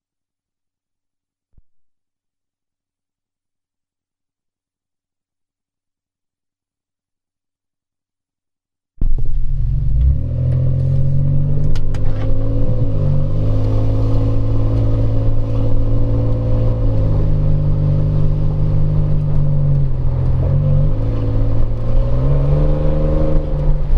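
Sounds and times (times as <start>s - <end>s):
exhaust: 9.0s - 23.9s.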